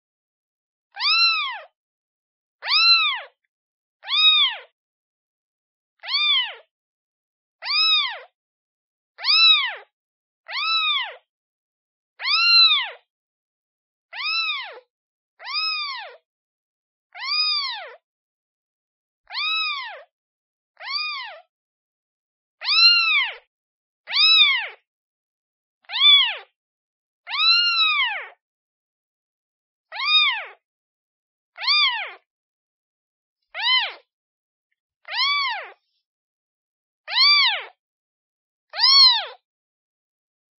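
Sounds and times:
kitten meowing: 0.9s - 1.7s, 2.6s - 3.4s, 4.0s - 4.7s, 6.0s - 6.6s, 7.6s - 8.3s, 9.2s - 9.9s, 10.5s - 11.2s, 12.2s - 13.0s, 14.1s - 14.8s, 15.4s - 16.2s, 17.2s - 18.0s, 19.3s - 20.1s, 20.8s - 21.4s, 22.6s - 23.4s, 24.1s - 24.8s, 25.8s - 26.5s, 27.3s - 28.4s, 29.9s - 30.6s, 31.6s - 32.2s, 33.6s - 34.1s, 35.0s - 35.8s, 37.1s - 37.8s, 38.7s - 39.4s.

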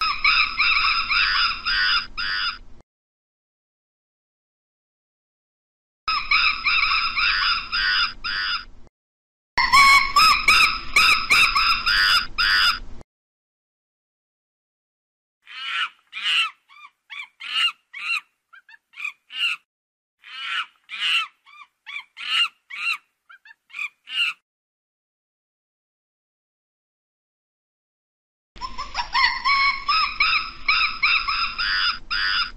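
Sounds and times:
monkeys calling: 0.0s - 2.6s, 6.1s - 8.7s, 9.6s - 12.8s, 15.4s - 19.6s, 20.2s - 24.4s, 28.6s - 32.5s.

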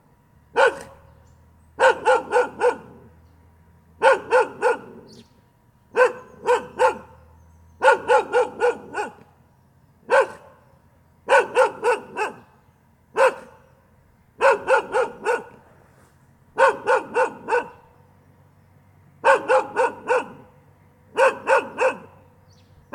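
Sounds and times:
faint steady hum: 0.0s - 22.9s
dog barking: 0.6s - 1.1s, 1.8s - 3.1s, 4.0s - 5.2s, 5.9s - 9.3s, 10.1s - 10.6s, 11.2s - 12.5s, 13.1s - 13.6s, 14.4s - 15.6s, 16.6s - 17.9s, 19.2s - 20.5s, 21.1s - 22.2s.

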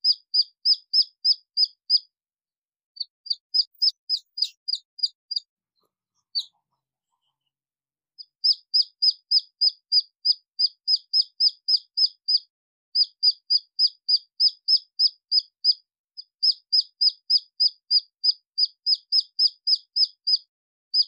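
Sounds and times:
red junglefowl chick peeping: 0.0s - 2.0s, 3.0s - 5.5s, 6.2s - 7.5s, 8.2s - 12.4s, 13.0s - 15.8s, 16.4s - 20.4s.

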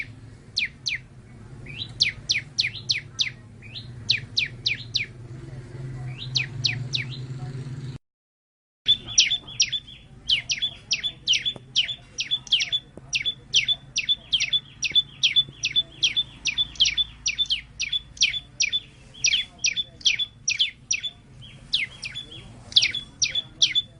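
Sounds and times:
white-eye song: 0.0s - 5.2s, 6.0s - 7.3s, 8.9s - 23.9s.

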